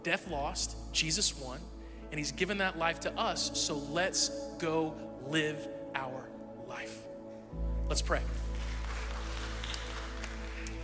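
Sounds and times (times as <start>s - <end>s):
speech: 0.0s - 8.5s
audience clapping: 8.0s - 10.8s.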